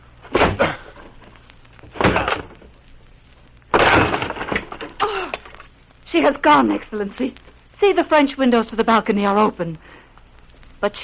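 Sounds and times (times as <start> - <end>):
door being broken down: 1.9 - 2.5, 3.7 - 5.0
speech: 6.1 - 10.0, 10.8 - 11.0.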